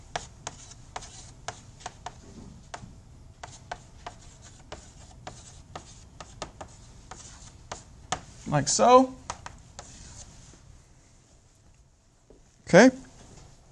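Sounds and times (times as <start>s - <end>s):
writing tool tapping and scratching while handwriting an equation: 0.1s - 2.8s, 3.4s - 8.3s, 9.3s - 9.9s
speech: 8.5s - 9.2s, 12.7s - 13.0s.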